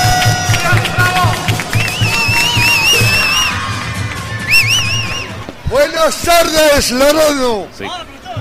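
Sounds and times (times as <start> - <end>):
crowd applause: 0.0 - 5.6
speech: 6.1 - 8.2.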